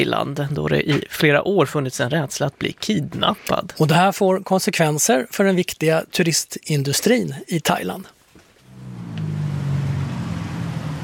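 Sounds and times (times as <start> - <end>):
speech: 0.0 - 8.2
cars and small motorcycles whizzing past on hot Bangkok streets: 8.6 - 11.0.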